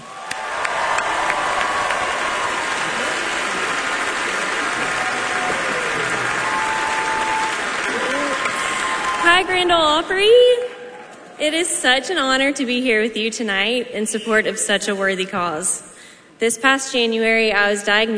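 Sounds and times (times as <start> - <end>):
Grand Ole Opry audience applauding: 0.0 - 10.0
speech: 9.4 - 10.5, 11.4 - 18.1.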